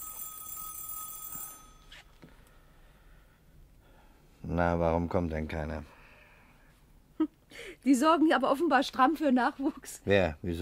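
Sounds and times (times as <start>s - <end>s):
doorbell ringing: 0.0s - 2.1s
speech: 4.5s - 6.0s, 7.2s - 10.5s.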